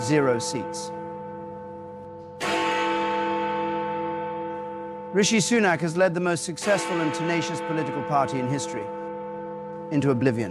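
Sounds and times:
speech: 0.0 - 1.0, 5.2 - 9.0, 9.9 - 10.4
Big Ben clock bell striking ten: 0.0 - 10.4.

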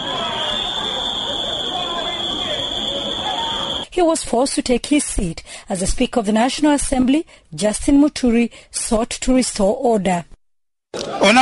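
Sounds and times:
shouting and murmuring voices: 0.0 - 3.8
loud whistling from parliamentarians on opposition benches: 0.0 - 3.9
speech: 4.0 - 10.3, 10.9 - 11.3.

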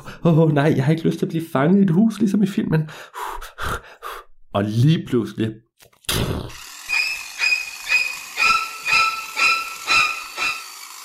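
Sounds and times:
speech: 0.2 - 3.8, 4.5 - 6.6
hedge trimmer running: 6.5 - 11.0.

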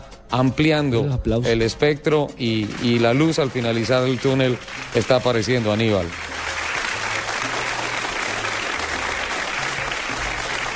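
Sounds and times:
speech: 0.3 - 6.3
audience applause: 2.6 - 10.7.

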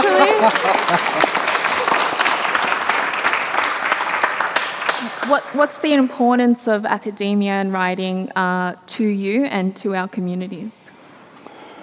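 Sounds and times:
laughter: 0.0 - 2.5
audience applause: 0.0 - 6.1
speech: 0.4 - 1.4, 5.3 - 10.8.

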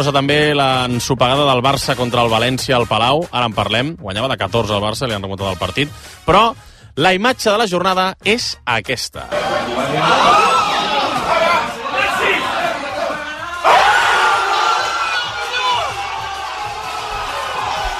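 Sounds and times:
speech: 0.0 - 10.6
packed bar crowd cheering a buzzer-beater three-pointer: 9.3 - 17.9.

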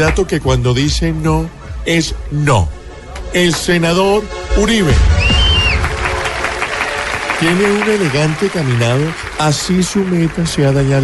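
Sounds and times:
speech: 0.0 - 5.2, 7.4 - 11.0
audience applause: 5.2 - 11.0.

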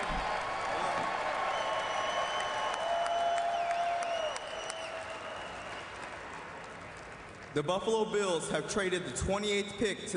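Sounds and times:
audience cheering: 0.0 - 6.4
speech: 7.6 - 10.1.

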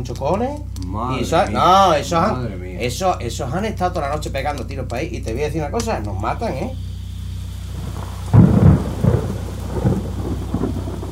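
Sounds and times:
speech: 0.0 - 6.9
heavy rain: 7.0 - 11.0
thunder: 7.7 - 11.0.

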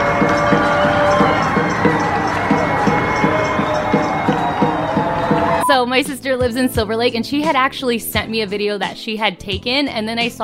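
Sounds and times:
people in Silver Lake screaming: 0.0 - 5.8
speech: 5.8 - 10.4.

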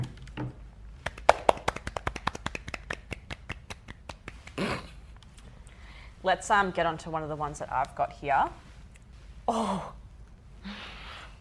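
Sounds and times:
crowd hand clapping: 1.0 - 4.8
speech: 6.2 - 8.6, 9.5 - 10.0.

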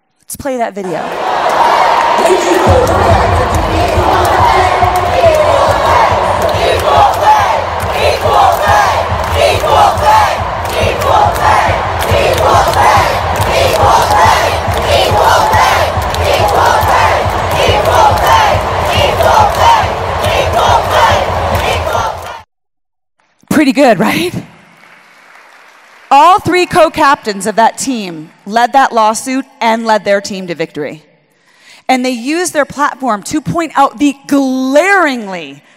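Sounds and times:
speech: 0.3 - 4.8, 23.6 - 24.5, 26.1 - 31.1, 31.9 - 35.7
stadium crowd chanting at match end: 0.8 - 22.5.

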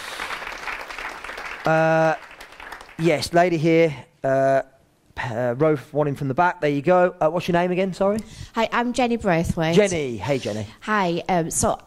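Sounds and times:
audience applause: 0.0 - 3.5
speech: 1.6 - 2.3, 3.0 - 11.8.

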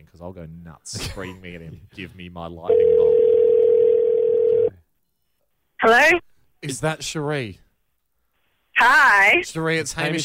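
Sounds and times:
speech: 0.1 - 3.9, 5.8 - 7.6, 8.8 - 10.2
telephone dial tone: 2.8 - 4.7.

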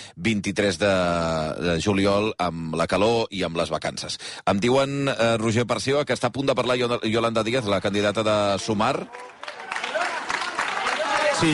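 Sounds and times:
speech: 0.2 - 9.6
crowd applauding at a political event: 7.6 - 11.5.

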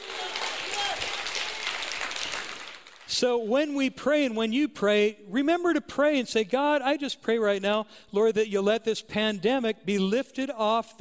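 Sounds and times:
audience clapping: 0.0 - 3.3
speech: 3.1 - 10.9.

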